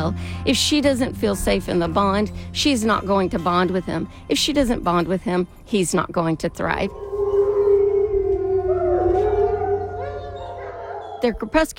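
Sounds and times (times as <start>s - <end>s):
speech: 0.0s - 7.0s, 11.2s - 11.7s
wild canine howling: 6.7s - 11.7s.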